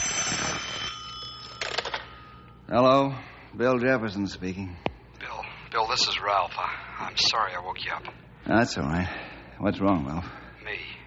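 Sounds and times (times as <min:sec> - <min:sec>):
telephone ringing: 0:00.0 - 0:02.6
speech: 0:02.7 - 0:04.9, 0:05.9 - 0:10.9.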